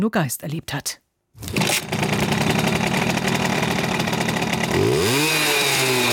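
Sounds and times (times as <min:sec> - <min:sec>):
speech: 0:00.0 - 0:01.9
Simson moped engine running and revving: 0:01.4 - 0:06.1.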